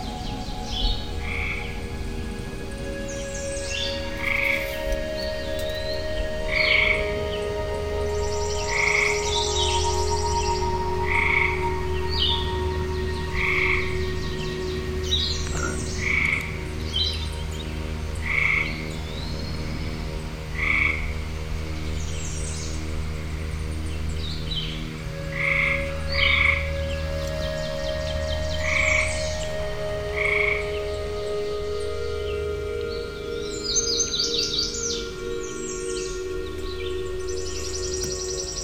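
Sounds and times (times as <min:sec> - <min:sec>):
constant low drone with sustained tones: 0:00.0 - 0:38.6
frog croaking in a woodland: 0:15.4 - 0:16.6.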